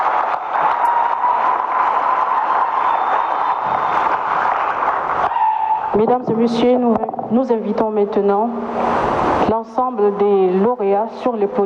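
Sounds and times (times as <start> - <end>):
crowd applauding: 0.0 - 6.0
speech: 6.0 - 11.6.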